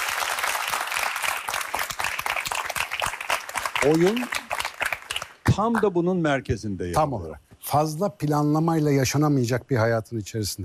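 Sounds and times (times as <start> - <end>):
audience applause: 0.0 - 5.4
speech: 3.8 - 4.4, 5.6 - 10.6.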